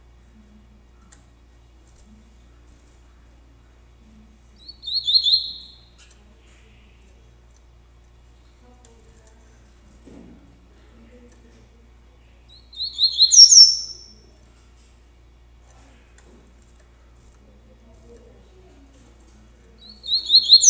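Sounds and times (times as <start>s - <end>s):
double-collared seedeater song: 4.6s - 5.8s, 12.5s - 14.2s, 19.8s - 20.6s.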